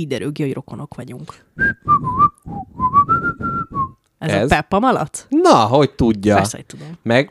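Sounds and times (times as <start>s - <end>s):
speech: 0.0s - 7.2s
person whistling a short family signal tune: 1.6s - 4.0s.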